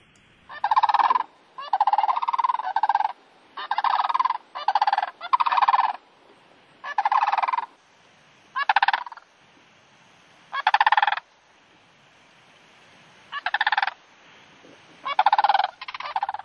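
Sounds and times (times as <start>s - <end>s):
sandhill cranes rattling bugle calls: 0.5s - 6.0s, 6.8s - 7.8s, 8.6s - 9.3s, 10.5s - 11.3s, 13.3s - 14.0s, 14.9s - 16.4s.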